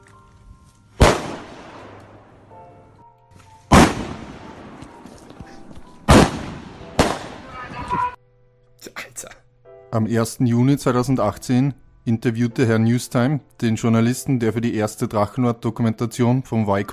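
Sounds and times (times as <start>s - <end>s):
fireworks thrown onto a farm at night: 1.0s - 2.0s, 3.7s - 5.0s, 6.1s - 8.0s
speech: 9.9s - 16.9s.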